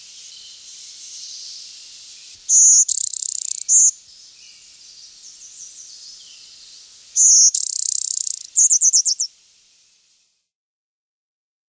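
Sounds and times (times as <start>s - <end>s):
Blue-winged Warbler singing: 0.1s - 9.3s.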